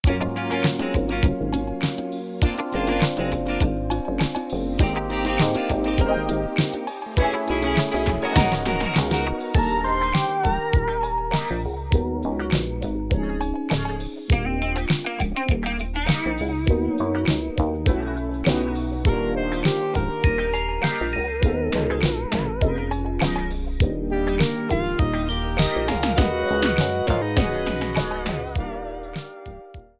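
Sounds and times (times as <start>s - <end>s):
electro arrangement: 0.0s - 29.9s.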